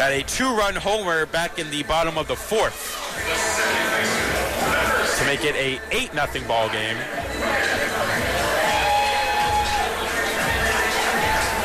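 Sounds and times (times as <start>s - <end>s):
speech: 0.0s - 4.1s, 5.2s - 8.2s
stadium crowd cheering: 8.0s - 11.6s.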